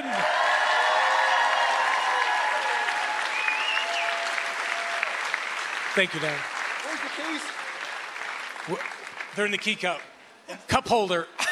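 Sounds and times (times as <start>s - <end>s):
whistles and cheers: 0.0s - 5.3s
crowd clapping: 0.0s - 10.2s
speech: 6.0s - 7.6s, 8.7s - 11.4s.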